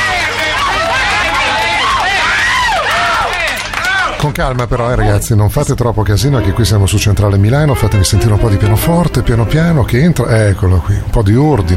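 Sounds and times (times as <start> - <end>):
crowd applause: 0.0 - 4.3
speech: 4.3 - 11.7.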